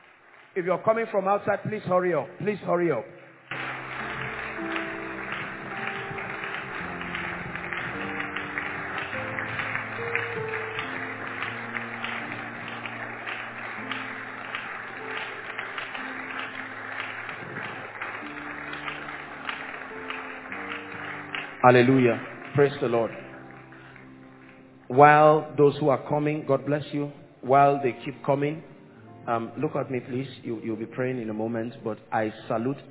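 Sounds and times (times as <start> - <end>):
audience clapping: 0.0 - 25.5
speech: 0.6 - 3.2, 21.6 - 23.2, 24.9 - 28.7, 29.3 - 32.8
sustained keyboard or organ chords: 2.2 - 32.1.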